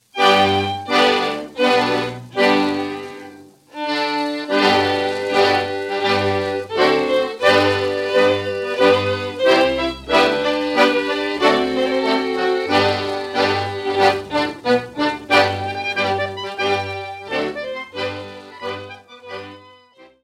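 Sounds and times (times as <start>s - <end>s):
masquerade music: 0.0s - 20.2s.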